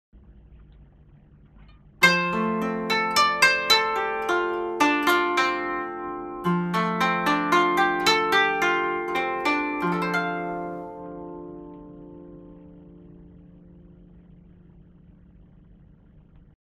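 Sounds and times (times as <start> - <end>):
koto: 1.9 - 14.2.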